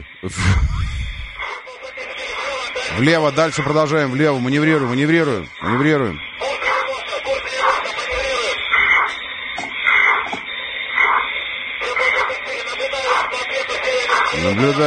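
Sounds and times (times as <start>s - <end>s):
pilot's heavy breathing through an oxygen mask over a radio channel: 0.0s - 1.4s
steady noise: 0.0s - 14.8s
speech: 0.2s - 1.0s, 2.8s - 6.3s, 14.4s - 14.8s.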